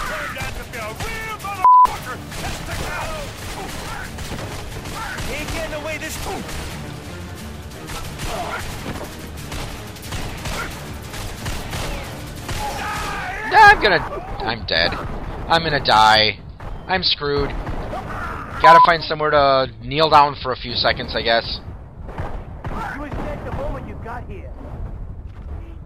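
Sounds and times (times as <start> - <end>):
gunfire in a video game shooter: 0.0 - 14.1, 14.8 - 19.0, 22.0 - 24.0
speech: 6.0 - 6.7, 13.8 - 17.6, 18.6 - 21.7.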